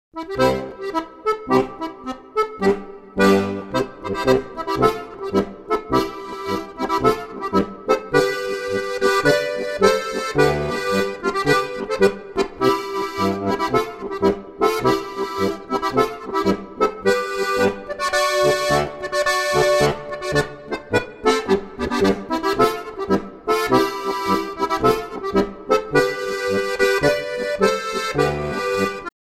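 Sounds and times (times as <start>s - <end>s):
march music: 0.3s - 29.1s.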